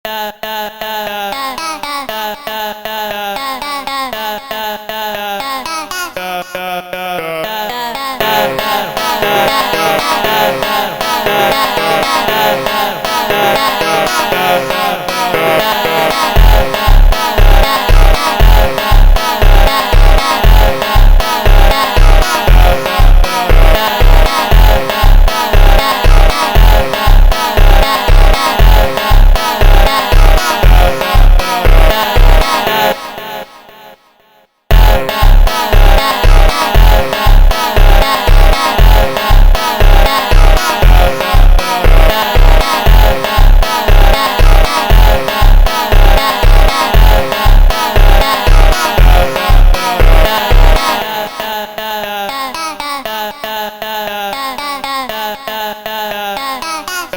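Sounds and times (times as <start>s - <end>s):
slowed funk instrumental: 8.3s - 32.9s, 34.7s - 51.1s.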